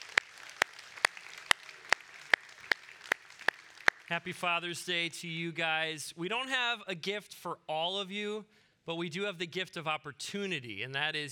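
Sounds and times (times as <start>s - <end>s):
audience applause: 0.0s - 4.4s
speech: 4.1s - 11.2s.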